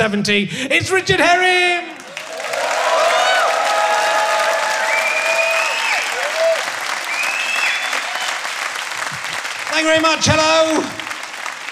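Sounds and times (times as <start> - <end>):
speech: 0.0 - 2.0, 9.8 - 11.0
high whistles and cheers from comedy audience: 2.0 - 8.8
live comedy audience applauding in a Canterbury theatre: 2.0 - 11.7.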